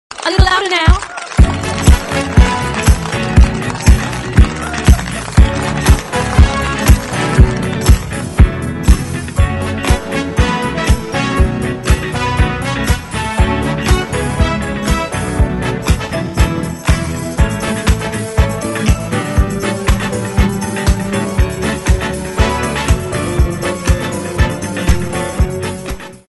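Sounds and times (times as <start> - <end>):
club music mix: 1.4 - 26.3.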